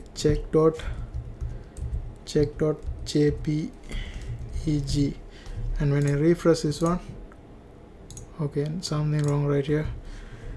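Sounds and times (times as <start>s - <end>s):
speech: 0.2s - 1.0s, 2.3s - 5.2s, 5.8s - 7.1s, 8.4s - 10.0s
typing on a computer keyboard: 0.2s - 5.2s, 5.8s - 7.0s, 8.1s - 8.3s, 9.2s - 9.4s.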